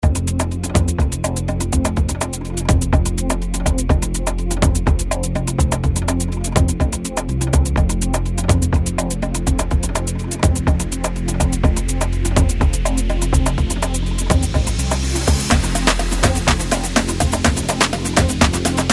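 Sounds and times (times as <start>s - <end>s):
music track in F minor at 124 BPM: 0.0s - 18.9s.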